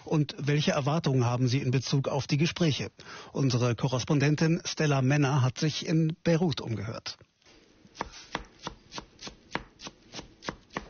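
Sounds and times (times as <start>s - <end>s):
speech: 0.1s - 7.3s
chef chopping herbs with a knife in a Beirut restaurant kitchen: 7.9s - 10.8s.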